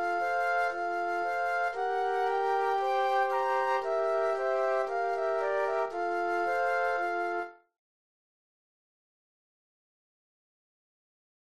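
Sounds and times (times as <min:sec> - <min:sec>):
flute trio playing classical music: 0:00.0 - 0:07.6.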